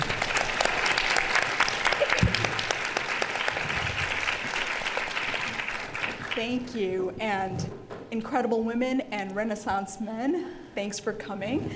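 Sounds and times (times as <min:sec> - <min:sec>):
audience applause welcoming a speaker to a talk: 0:00.0 - 0:06.4
speech: 0:06.4 - 0:11.7.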